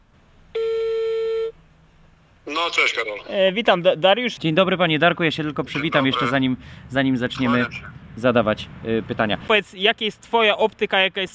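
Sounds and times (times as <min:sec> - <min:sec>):
telephone ringback tone: 0:00.6 - 0:01.5
speech: 0:02.6 - 0:11.3.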